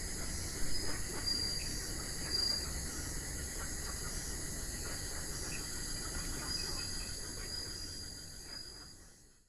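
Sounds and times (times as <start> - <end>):
Guenther's frog in Nanao Yilan: 0.0 - 9.4.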